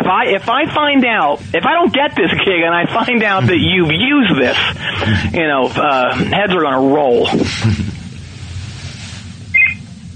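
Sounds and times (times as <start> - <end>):
steady low rumbling background: 0.0 - 10.1
speech: 0.1 - 7.9
mobile phone high-pitched electronic chirp: 9.5 - 9.8.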